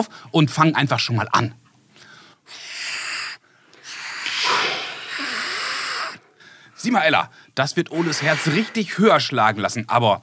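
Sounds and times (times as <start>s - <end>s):
speech: 0.0s - 1.6s, 6.8s - 10.2s
person snoring: 3.9s - 6.4s.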